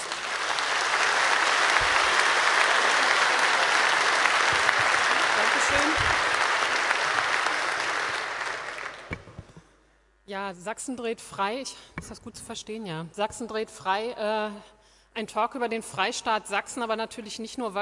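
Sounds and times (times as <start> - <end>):
audience applause: 0.0 - 9.3
speech: 10.3 - 17.7.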